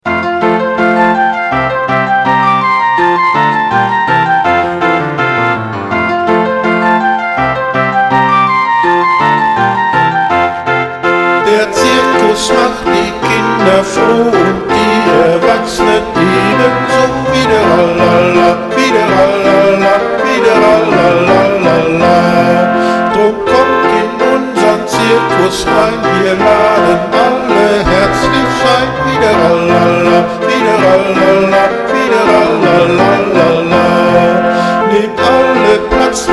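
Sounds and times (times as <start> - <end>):
circus songs: 0.0 - 36.3.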